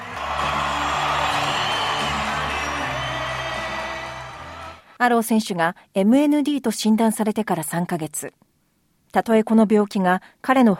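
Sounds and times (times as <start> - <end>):
stadium crowd cheering at a rugby league match: 0.0 - 5.0
speech: 5.0 - 8.4, 9.1 - 10.7.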